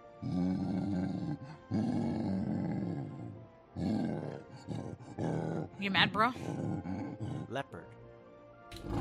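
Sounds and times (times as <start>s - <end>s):
gorilla from a game growling: 0.0s - 7.7s, 8.8s - 8.9s
gorilla from a game grunting: 0.1s - 5.8s, 6.4s - 7.6s
speech: 0.2s - 0.8s, 1.7s - 2.2s, 5.8s - 6.7s.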